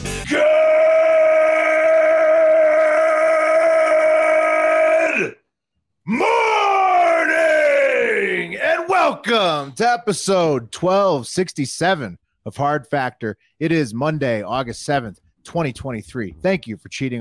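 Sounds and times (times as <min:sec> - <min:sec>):
loud yell into microphone: 0:00.3 - 0:05.4, 0:06.1 - 0:09.7
speech: 0:09.6 - 0:17.2.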